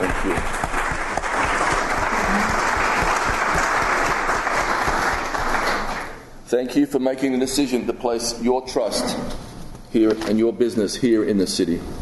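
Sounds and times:
audience applause: 0.0s - 6.2s
speech: 0.1s - 0.6s, 6.5s - 12.0s.

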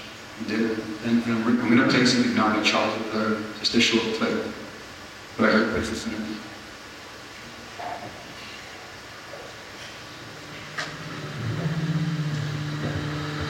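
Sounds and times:
speech: 0.4s - 4.6s, 5.4s - 6.5s
ship's motor droning low and steady: 9.8s - 13.4s.

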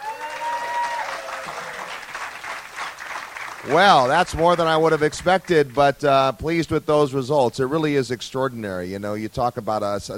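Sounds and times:
audience applause: 0.0s - 5.9s
speech: 3.6s - 10.1s.

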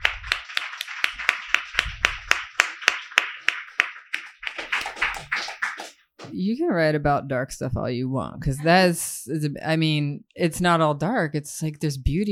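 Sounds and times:
audience applause: 0.0s - 5.9s
speech: 6.4s - 12.2s.

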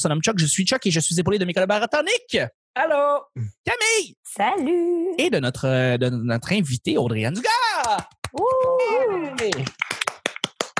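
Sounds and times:
speech: 0.0s - 10.0s
one person clapping hands: 7.7s - 10.7s.

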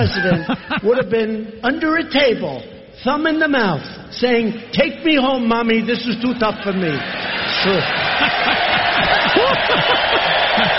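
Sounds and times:
laughter: 0.0s - 1.1s, 6.6s - 10.7s
speech: 0.0s - 8.7s, 9.4s - 10.3s
large crowd roaring: 6.8s - 10.7s
scattered rising shouts and whoops: 7.6s - 10.7s.

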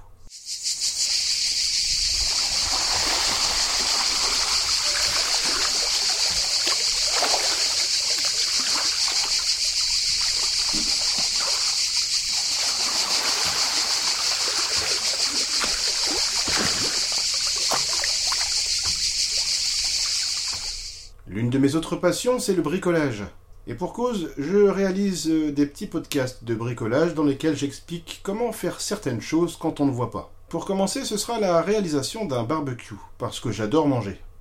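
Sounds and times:
cicadas droning: 0.0s - 21.2s
water splashing as someone bathes in a swimming pool: 2.1s - 21.1s
speech: 21.8s - 34.3s.

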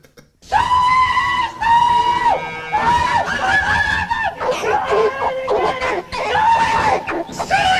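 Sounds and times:
man doing a loud hog call: 0.5s - 7.7s.

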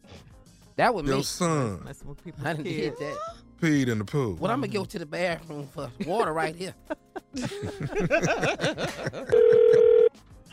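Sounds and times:
speech: 0.8s - 10.5s
laughter: 6.8s - 9.8s
telephone dialing tones: 9.3s - 10.1s
telephone ring tone: 9.3s - 10.2s.

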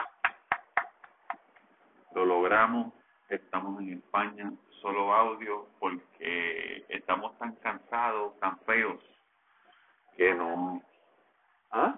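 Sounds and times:
hand clapping: 0.0s - 1.7s
speech: 2.2s - 9.2s, 10.2s - 10.9s, 11.7s - 11.9s.

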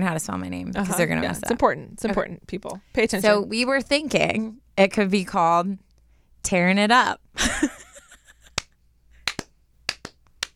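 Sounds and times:
speech: 0.0s - 5.8s, 6.4s - 7.8s
slow clapping by two people: 8.4s - 10.5s.

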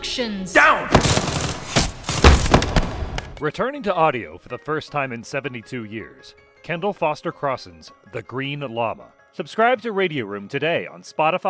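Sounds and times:
speech: 0.2s - 1.5s, 3.4s - 11.4s
gunfire sound effect: 0.8s - 3.4s.

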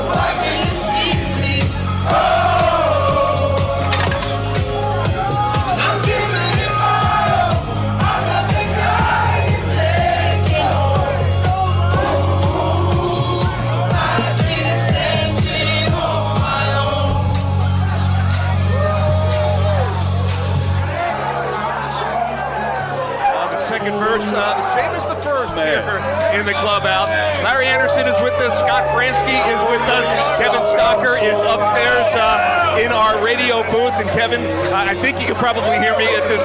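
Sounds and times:
theme song with thumping bass beat in the clubhouse: 0.0s - 20.9s
Phillies players cheering, whooping and shouting: 0.0s - 36.4s.

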